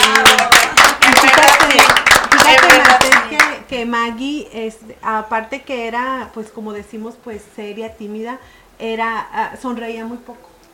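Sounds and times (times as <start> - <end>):
applause: 0.0 - 3.6
speech: 4.1 - 10.5.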